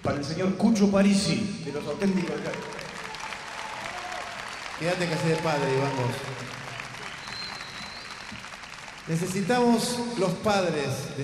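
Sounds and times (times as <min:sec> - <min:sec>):
speech: 0:00.1 - 0:02.9, 0:04.8 - 0:06.7, 0:09.1 - 0:11.2
audience applause: 0:01.7 - 0:10.3.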